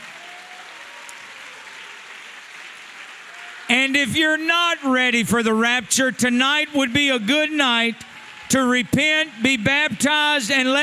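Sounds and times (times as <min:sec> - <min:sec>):
audience clapping hands: 0:00.0 - 0:10.8
speech: 0:03.7 - 0:10.8.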